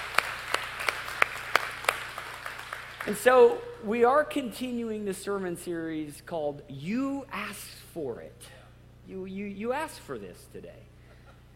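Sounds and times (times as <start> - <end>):
church congregation clapping during a morning service: 0.0 - 3.7
speech: 3.1 - 10.9.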